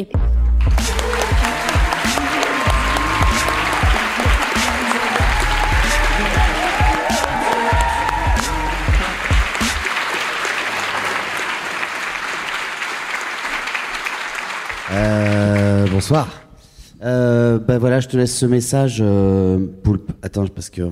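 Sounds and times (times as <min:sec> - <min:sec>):
speech: 0:00.0 - 0:00.3, 0:16.0 - 0:16.4, 0:17.0 - 0:20.9
audience applause: 0:00.6 - 0:16.4.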